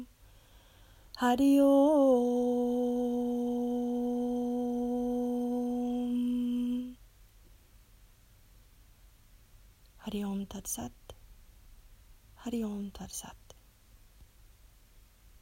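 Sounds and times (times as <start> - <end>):
mantra chanting: 1.2 - 7.0.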